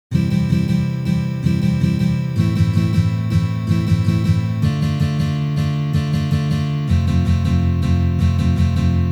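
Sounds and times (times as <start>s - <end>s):
waltz rhythm strumming on guitar: 0.1s - 9.1s.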